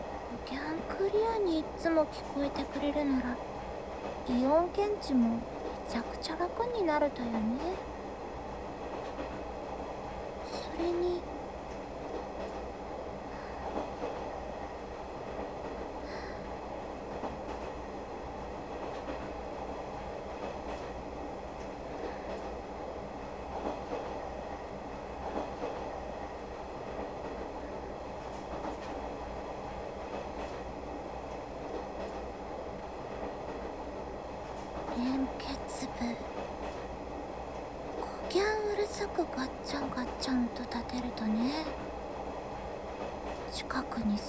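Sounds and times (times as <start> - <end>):
train rumbling: 0.0 - 44.2
speech: 0.4 - 3.5, 4.3 - 7.9, 10.8 - 11.3.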